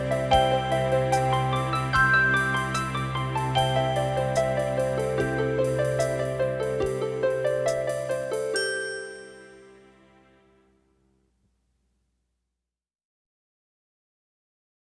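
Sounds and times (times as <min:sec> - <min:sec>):
slow chord etude: 0:00.0 - 0:10.7.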